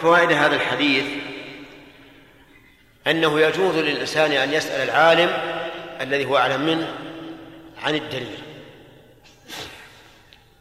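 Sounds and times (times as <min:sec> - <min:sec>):
speech: 0:00.0 - 0:01.3, 0:03.0 - 0:07.1, 0:07.8 - 0:08.5
low steady hum: 0:00.0 - 0:10.5
sneeze: 0:09.2 - 0:10.2.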